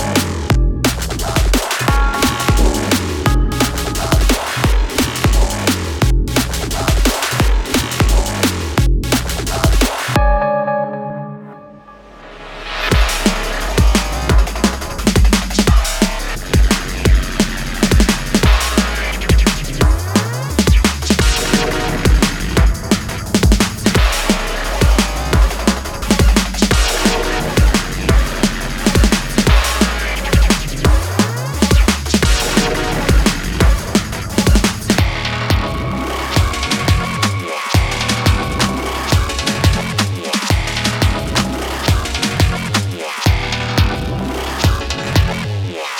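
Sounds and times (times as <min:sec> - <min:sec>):
techstep music: 0:00.0 - 0:10.2, 0:11.9 - 0:45.9.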